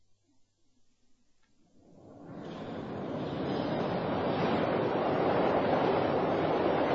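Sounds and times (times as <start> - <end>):
London Underground train arriving at platform: 2.2 - 6.9.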